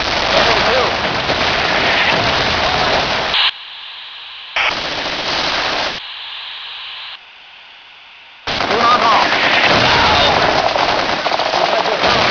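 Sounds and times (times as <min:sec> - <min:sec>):
radio: 0:00.2 - 0:01.1, 0:01.7 - 0:07.2, 0:08.5 - 0:10.5, 0:11.4 - 0:12.2.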